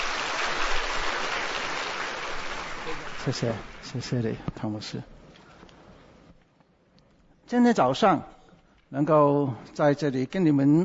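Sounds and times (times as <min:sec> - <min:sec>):
crowd clapping: 0:00.0 - 0:04.4
speech: 0:03.2 - 0:05.2, 0:07.5 - 0:10.8.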